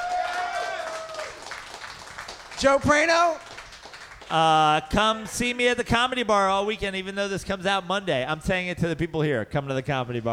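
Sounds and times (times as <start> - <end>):
sustained high whoop or whistle: 0.0 - 1.4
audience clapping: 0.0 - 5.6
speech: 2.6 - 3.5, 4.3 - 10.3.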